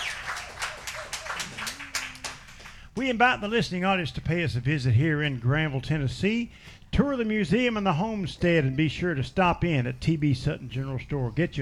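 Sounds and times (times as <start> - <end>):
audience round of applause: 0.0 - 2.9
speech: 3.0 - 11.6.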